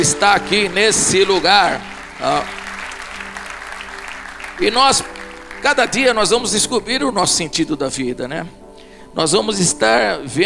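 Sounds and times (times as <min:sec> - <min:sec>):
speech: 0:00.0 - 0:02.6, 0:04.6 - 0:08.6, 0:09.2 - 0:10.4
audience applause: 0:00.0 - 0:06.5.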